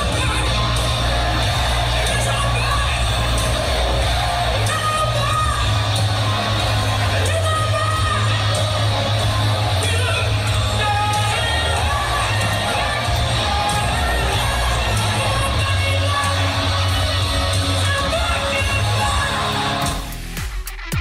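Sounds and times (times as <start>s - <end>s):
concert crowd noise: 0.0s - 20.9s
live rock band covering a hard-rock classic: 0.0s - 20.9s.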